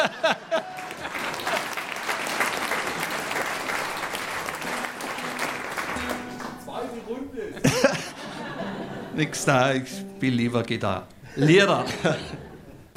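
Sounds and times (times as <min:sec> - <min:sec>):
speech: 0:00.0 - 0:00.7, 0:09.2 - 0:12.4
laughter: 0:00.0 - 0:01.9, 0:07.4 - 0:09.6, 0:11.2 - 0:12.8
audience applause: 0:00.0 - 0:07.0.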